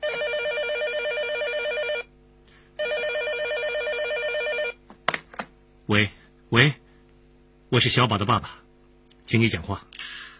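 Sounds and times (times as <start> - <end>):
telephone ringing with warbling electronic trill: 0.0 - 2.1, 2.8 - 4.8
speech: 5.9 - 6.8, 7.7 - 8.6, 9.3 - 9.9.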